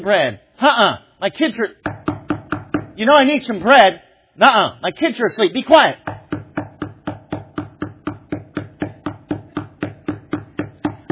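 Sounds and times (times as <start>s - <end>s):
speech: 0.0s - 2.0s, 3.0s - 6.1s
knocking on a door: 1.8s - 3.0s, 6.0s - 11.0s.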